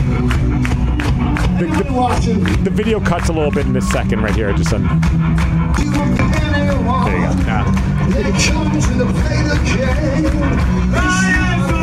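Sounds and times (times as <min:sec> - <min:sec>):
crowd clapping and cheering: 0:00.0 - 0:11.8
speech: 0:01.6 - 0:11.4.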